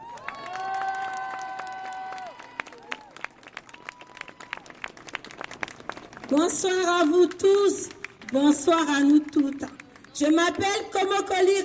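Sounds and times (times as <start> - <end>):
audience applause: 0.0 - 6.4
speech: 6.3 - 11.6.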